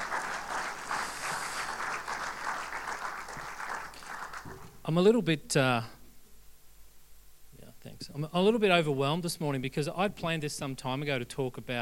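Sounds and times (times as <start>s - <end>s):
audience applause: 0.0s - 4.7s
speech: 4.8s - 6.0s, 8.2s - 11.8s.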